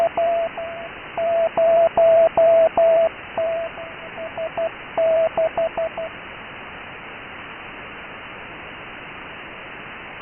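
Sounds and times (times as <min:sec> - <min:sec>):
CW Morse code beeps: 0:00.0 - 0:06.1.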